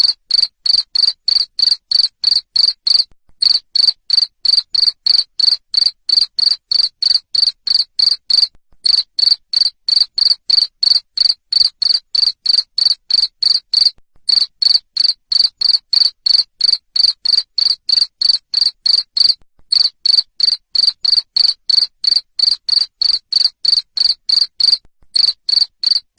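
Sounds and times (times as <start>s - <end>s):
cricket chirping: 0.0s - 26.1s.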